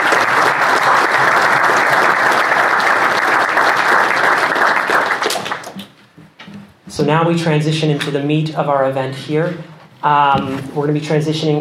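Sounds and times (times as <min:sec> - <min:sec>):
crowd applause: 0:00.0 - 0:05.9
speech: 0:07.0 - 0:11.5.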